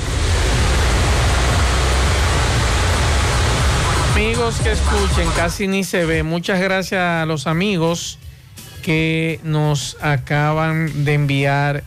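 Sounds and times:
heavy rain downpour: 0:00.0 - 0:05.6
speech: 0:04.4 - 0:11.8.

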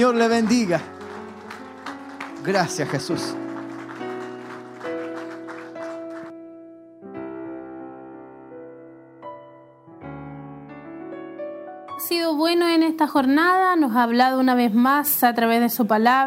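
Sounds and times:
speech: 0:00.0 - 0:00.9, 0:02.4 - 0:03.4, 0:12.4 - 0:16.2
audience applause: 0:00.0 - 0:06.4
keyboard or organ chords: 0:00.0 - 0:12.7.

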